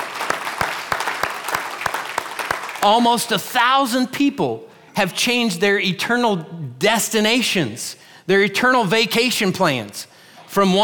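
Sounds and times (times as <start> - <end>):
audience applauding: 0.0 - 3.1
speech: 2.8 - 10.8.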